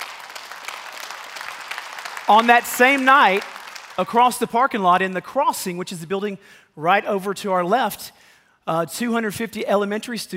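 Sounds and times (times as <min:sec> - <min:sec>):
audience clapping: 0:00.0 - 0:04.8
speech: 0:02.3 - 0:10.3.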